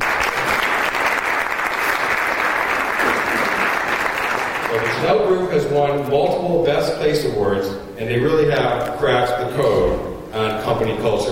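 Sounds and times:
audience applause: 0:00.0 - 0:05.4
speech: 0:05.0 - 0:11.2.

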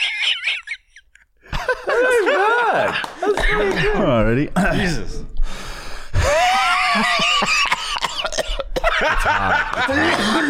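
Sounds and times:
laughter: 0:00.0 - 0:04.1, 0:06.2 - 0:10.4
speech: 0:04.3 - 0:05.3
person coughing: 0:07.5 - 0:09.0, 0:09.9 - 0:10.4.

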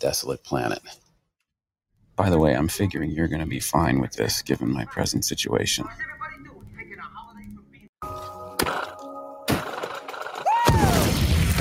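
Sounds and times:
speech: 0:00.0 - 0:01.0, 0:02.2 - 0:06.2
bangs and thuds: 0:09.5 - 0:11.5
person whooping: 0:10.4 - 0:11.1
film explosion from The Martian with lingering rumble: 0:10.6 - 0:11.5.

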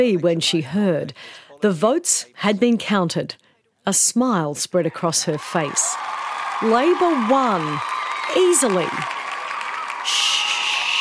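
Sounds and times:
speech: 0:00.0 - 0:09.2, 0:10.0 - 0:10.4
supporters cheering election victory: 0:05.2 - 0:10.9.

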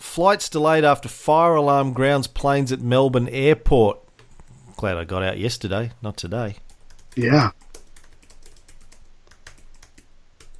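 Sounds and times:
speech: 0:00.2 - 0:04.0, 0:04.8 - 0:06.6, 0:07.2 - 0:07.6
typing on a computer keyboard: 0:06.7 - 0:10.5.

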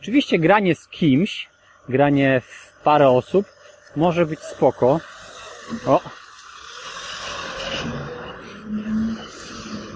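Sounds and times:
speech: 0:00.0 - 0:06.2
small garbage truck passing: 0:02.5 - 0:09.9.

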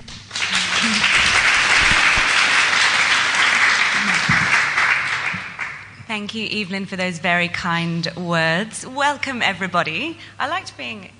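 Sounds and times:
audience applause welcoming a moderator and panel at a panel discussion: 0:00.0 - 0:05.9
speech: 0:06.2 - 0:11.1.

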